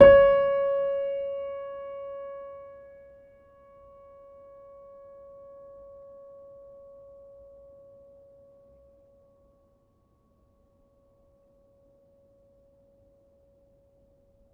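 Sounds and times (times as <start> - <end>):
upright piano: 0.0 - 6.8.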